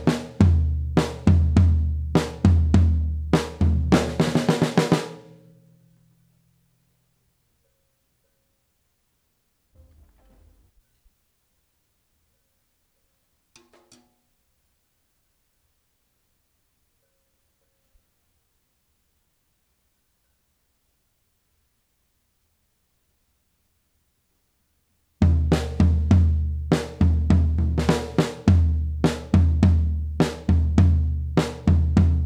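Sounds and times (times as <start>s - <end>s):
floor tom drum: 0.0s - 5.0s, 25.2s - 32.2s.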